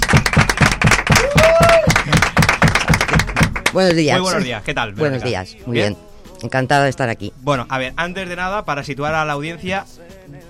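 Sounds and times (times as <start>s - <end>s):
applause in a studio: 0.0s - 4.0s
speech: 3.7s - 10.4s.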